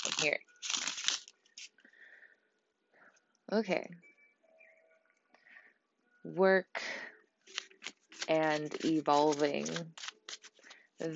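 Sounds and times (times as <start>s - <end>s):
Tarot Mucha cards shuffling: 0.0s - 1.8s, 7.5s - 11.1s
speech: 0.2s - 0.9s, 3.5s - 4.1s, 6.2s - 7.0s, 8.3s - 10.0s, 11.0s - 11.1s.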